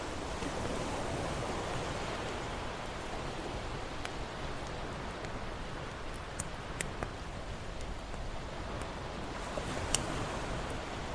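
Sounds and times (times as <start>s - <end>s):
ocean waves lapping against the shore: 0.0s - 11.1s
campfire crackling: 2.3s - 11.1s.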